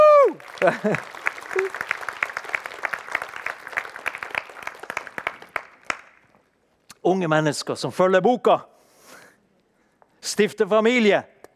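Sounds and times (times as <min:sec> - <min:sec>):
audience applauding newlywed couple: 0:00.0 - 0:06.3
laughter: 0:00.6 - 0:01.8
speech: 0:00.6 - 0:01.9, 0:07.1 - 0:08.7, 0:10.3 - 0:11.3.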